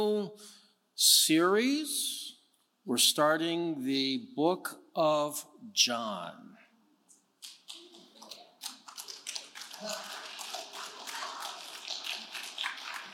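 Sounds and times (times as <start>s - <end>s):
speech: 0.0s - 2.2s, 2.8s - 6.6s, 9.8s - 10.1s
group of people clapping: 7.4s - 13.1s.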